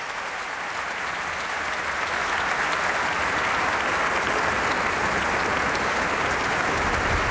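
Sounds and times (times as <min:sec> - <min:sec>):
concert audience applauding: 0:00.0 - 0:07.2.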